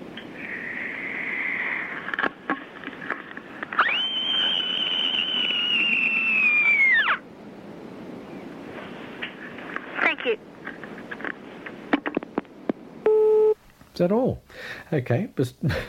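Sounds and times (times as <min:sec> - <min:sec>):
rushing noise: 0:00.0 - 0:13.0
child screaming: 0:05.6 - 0:07.2
speech: 0:14.0 - 0:15.8.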